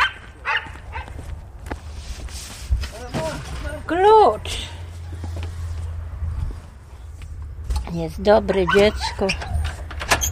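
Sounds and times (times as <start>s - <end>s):
dog barking: 0.0s - 1.2s, 8.5s - 9.3s
shuffling footsteps: 0.0s - 7.8s
speech: 3.9s - 4.6s, 7.9s - 9.5s.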